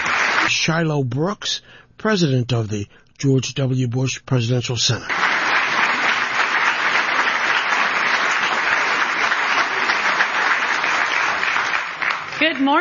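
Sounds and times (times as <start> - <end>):
large audience applause: 0.0 - 0.5, 5.1 - 12.7
speech: 0.5 - 5.3, 12.5 - 12.7.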